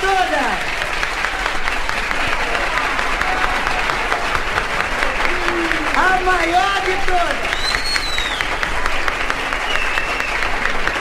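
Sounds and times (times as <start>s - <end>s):
applause from a large crowd: 0.0s - 11.0s
speech: 6.3s - 7.6s.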